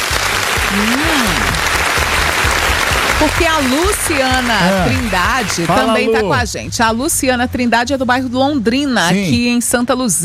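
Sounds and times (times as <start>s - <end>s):
audience applause: 0.0s - 6.4s
speech: 0.7s - 1.4s, 3.2s - 10.2s.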